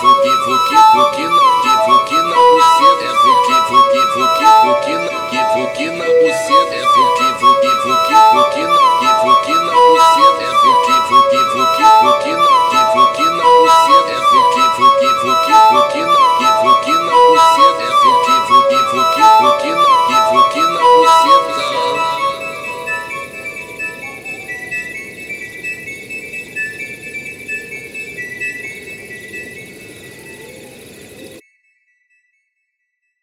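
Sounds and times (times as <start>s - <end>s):
montagem funk music: 0.0s - 24.7s.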